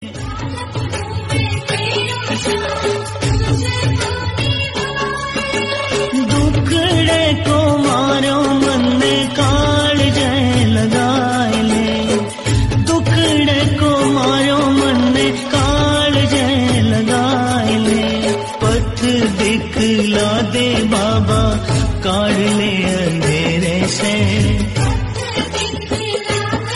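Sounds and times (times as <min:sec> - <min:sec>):
Hindi devotional bhakti music: 0:00.0 - 0:26.7.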